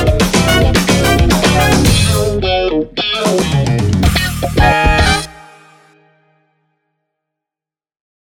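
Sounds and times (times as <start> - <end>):
funk dance music: 0.0 - 5.8.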